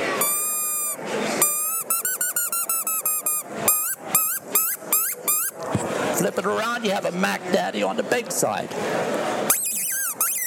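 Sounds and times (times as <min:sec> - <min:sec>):
2.5-inch handheld fox predator call imitating a mouse squeak: 0:00.0 - 0:05.6, 0:09.5 - 0:10.4
speech: 0:06.2 - 0:09.6.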